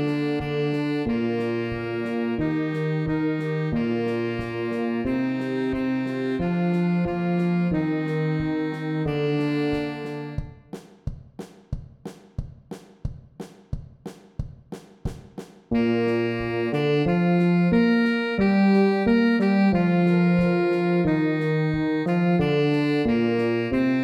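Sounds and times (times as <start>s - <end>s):
saxophone playing in a bar: 0.0s - 10.6s, 15.7s - 24.0s.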